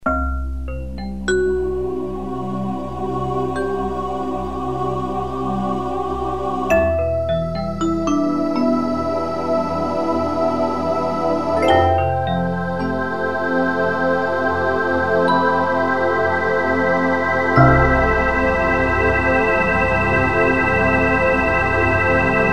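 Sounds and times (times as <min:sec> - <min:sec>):
keyboard: 0:00.0 - 0:22.5.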